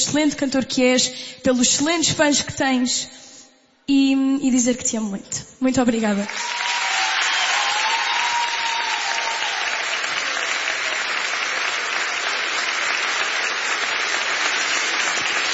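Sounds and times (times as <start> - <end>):
speech: 0.0 - 3.2, 3.9 - 6.5
audience applause: 6.2 - 15.5.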